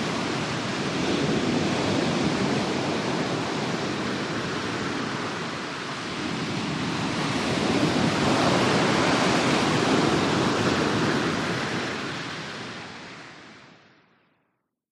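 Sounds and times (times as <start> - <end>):
broad warm surf on pebble beach: 0.0 - 13.7.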